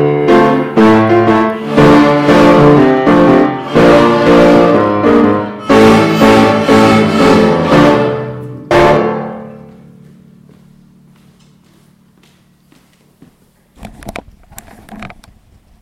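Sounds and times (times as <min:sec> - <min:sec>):
year 4 group playing blues: 0:00.3 - 0:09.5.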